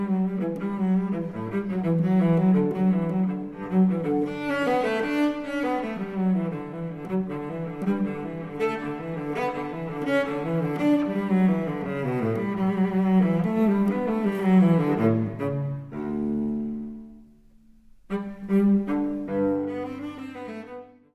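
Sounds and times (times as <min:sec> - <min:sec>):
solo cello piece in G major: 0:00.0 - 0:21.1.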